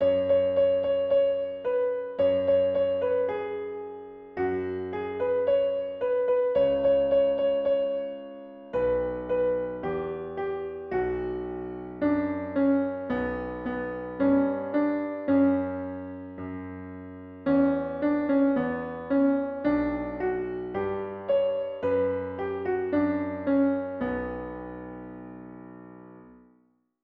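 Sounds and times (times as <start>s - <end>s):
piano: 0.0s - 26.7s.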